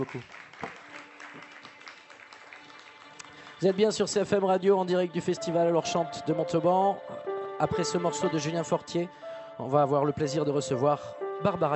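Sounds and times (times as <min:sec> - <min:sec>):
speech: 0:00.0 - 0:00.5, 0:03.6 - 0:11.7
audience applause: 0:00.0 - 0:04.4.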